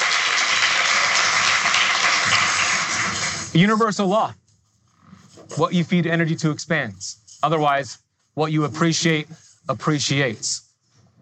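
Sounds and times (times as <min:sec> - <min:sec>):
audience clapping: 0:00.0 - 0:03.5
speech: 0:03.6 - 0:04.4, 0:05.6 - 0:10.6.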